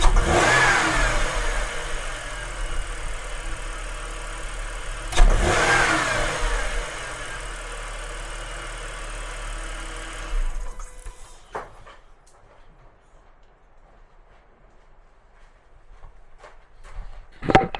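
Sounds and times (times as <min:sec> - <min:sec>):
engine responding to throttle: 0:00.0 - 0:11.6.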